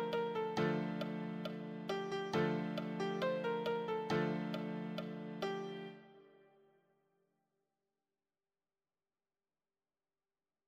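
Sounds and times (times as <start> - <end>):
easy solo piano: 0.0 - 6.2.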